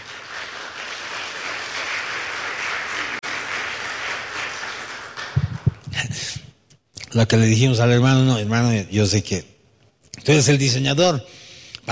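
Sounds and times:
audience applause: 0.0 - 5.9
speech: 7.2 - 9.5, 10.3 - 11.9.

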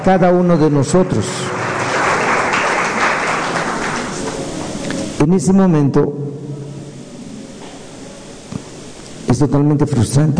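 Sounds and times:
speech: 0.0 - 1.7, 5.2 - 6.2, 9.3 - 10.3
audience applause: 0.9 - 5.2.

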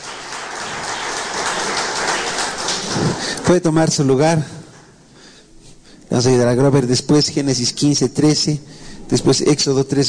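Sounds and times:
audience applause: 0.0 - 3.7
speech: 3.5 - 4.6, 6.1 - 10.0.

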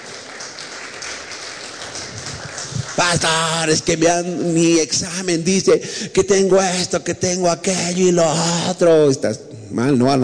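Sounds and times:
audience applause: 0.0 - 4.0
speech: 3.0 - 10.2.

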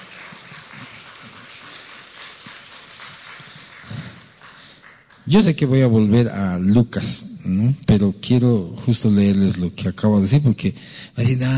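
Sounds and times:
audience applauding: 0.0 - 5.8
speech: 5.3 - 11.5.

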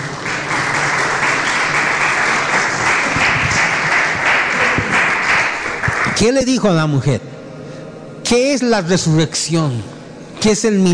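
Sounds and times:
crowd applause: 0.0 - 6.3
speech: 6.2 - 7.4, 8.3 - 10.9.

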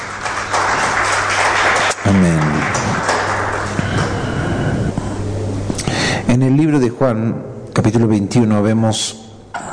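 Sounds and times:
audience applause: 0.0 - 5.0
speech: 2.0 - 2.8, 6.3 - 9.2.

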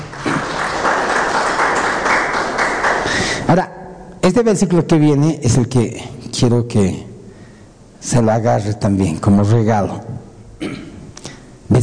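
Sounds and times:
crowd applause: 0.0 - 3.5
speech: 3.5 - 7.1, 8.0 - 10.8.

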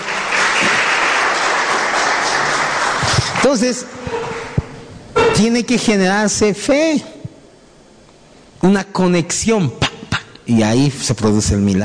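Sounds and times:
loud audience applause: 0.0 - 3.7
speech: 3.4 - 4.2, 5.4 - 7.1, 8.6 - 9.8, 10.5 - 11.8.

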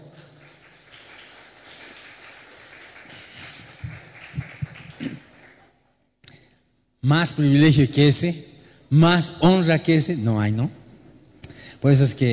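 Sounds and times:
audience applause: 0.0 - 5.8
speech: 7.1 - 10.8, 11.8 - 12.3.

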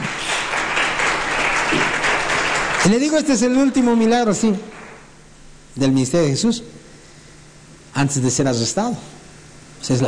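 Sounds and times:
church congregation applauding: 0.0 - 5.1
speech: 2.8 - 4.8, 5.8 - 6.8, 8.0 - 9.2, 9.8 - 10.0.

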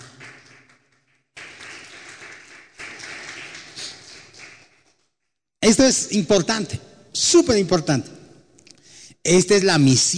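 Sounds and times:
audience applauding: 0.0 - 5.0
speech: 5.7 - 8.2, 9.2 - 10.1.

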